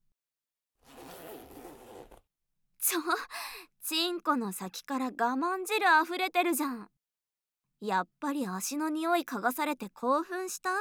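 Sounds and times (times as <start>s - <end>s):
zipper pulled down on trousers: 0.8s - 2.3s
speech: 2.9s - 7.0s, 7.8s - 10.8s.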